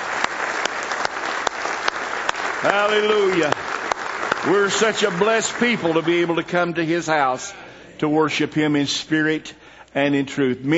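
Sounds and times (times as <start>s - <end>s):
church congregation clapping in praise during morning worship: 0.0s - 7.3s
speech: 2.6s - 3.6s, 4.4s - 10.7s.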